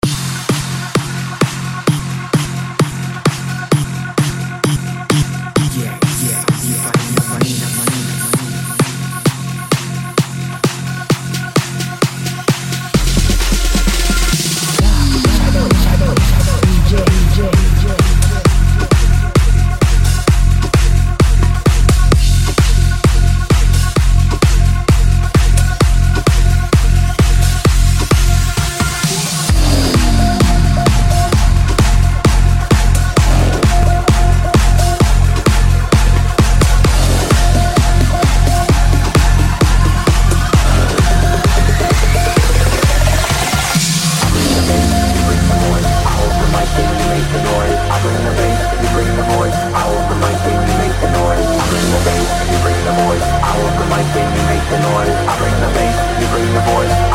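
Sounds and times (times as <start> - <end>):
130 BPM future bounce trance: 0.0 - 57.1.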